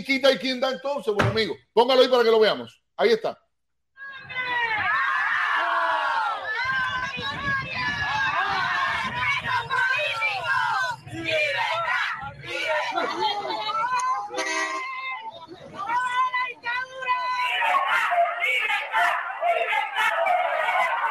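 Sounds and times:
speech: 0.0s - 3.4s
protesting crowd shouting: 4.0s - 21.0s
laughter: 12.4s - 14.7s.

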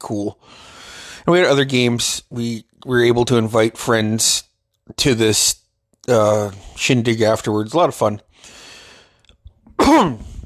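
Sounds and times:
speech: 0.0s - 8.6s, 9.9s - 10.3s
breathy exhale: 0.4s - 1.3s, 8.4s - 9.2s
person coughing: 9.8s - 10.4s.

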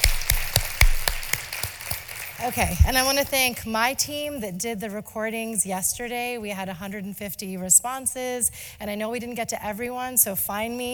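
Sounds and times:
audience applause: 0.0s - 2.9s
speech: 2.4s - 10.9s.

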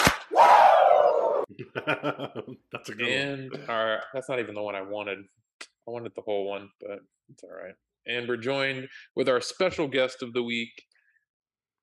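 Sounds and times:
hand clap: 0.0s - 0.3s
wrestler-style woo yell: 0.3s - 1.5s
laughter: 1.5s - 3.9s
speech: 1.9s - 10.9s.

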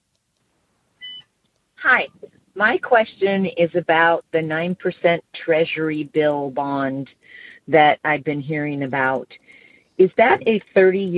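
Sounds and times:
beep of a button starting a call: 1.0s - 1.3s
speech: 1.9s - 11.1s.

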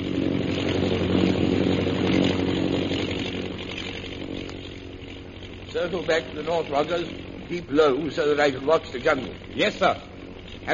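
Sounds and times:
propeller airplane engine droning overhead: 0.0s - 10.7s
speech: 5.8s - 10.7s.

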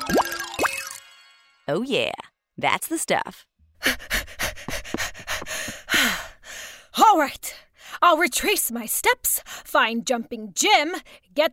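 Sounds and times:
cue of rising bubbly bloops: 0.0s - 1.0s
speech: 1.7s - 4.0s, 7.1s - 11.5s.

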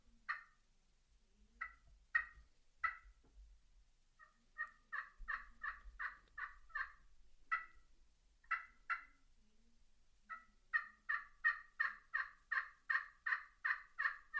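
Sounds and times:
slate friction turkey call yelps: 0.3s - 0.6s, 1.6s - 3.1s, 4.2s - 7.8s, 8.5s - 9.2s, 10.3s - 14.3s.

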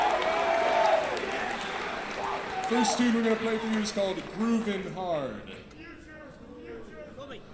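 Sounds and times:
audience round of applause: 0.0s - 5.4s
speech: 2.7s - 5.7s.

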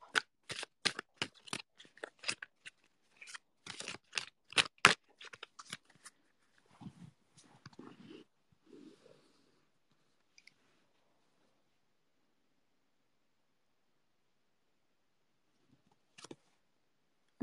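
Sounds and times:
tarot cards and Work Your Light oracle deck being pulled and handled: 0.0s - 6.2s, 16.2s - 16.4s.

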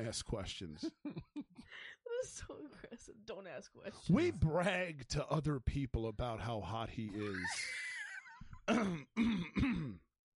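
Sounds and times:
speech: 0.0s - 7.9s, 8.7s - 10.0s
laughter: 6.9s - 8.4s
cough: 8.7s - 10.2s.

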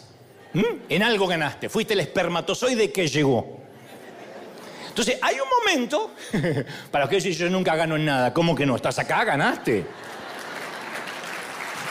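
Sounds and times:
speech: 0.5s - 3.7s, 5.0s - 10.1s
laughter: 3.7s - 5.0s, 6.1s - 6.9s, 9.4s - 11.3s
audience applause: 10.0s - 11.9s.

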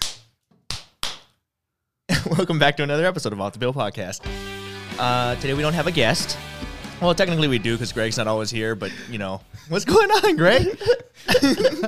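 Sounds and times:
sharp hand claps: 0.0s - 1.4s
speech: 2.2s - 11.8s
laughter: 8.8s - 11.8s.

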